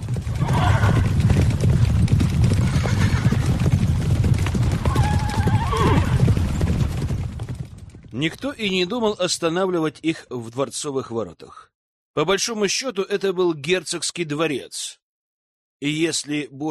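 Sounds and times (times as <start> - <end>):
horse-drawn carriage rumble: 0.0 - 8.5
horse-drawn carriage hooves clip-clopping: 0.0 - 9.1
horse neighing: 0.3 - 1.2, 2.6 - 3.6, 4.8 - 6.3
speech: 8.2 - 15.0, 15.8 - 16.6.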